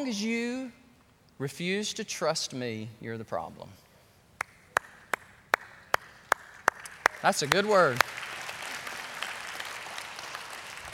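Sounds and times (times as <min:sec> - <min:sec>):
speech: 0:00.0 - 0:00.8, 0:01.4 - 0:03.8, 0:07.2 - 0:08.3
hands clapping: 0:04.4 - 0:10.9.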